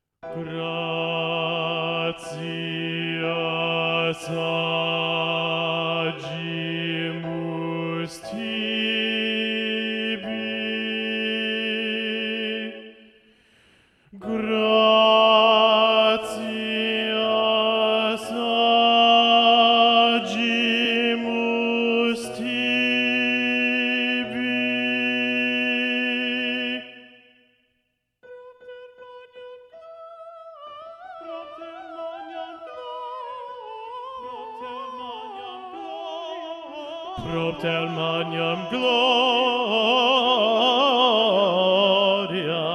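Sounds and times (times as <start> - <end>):
choral Gloria section with predominant bass voices: 0.4 - 13.1, 14.2 - 27.1, 36.6 - 42.7.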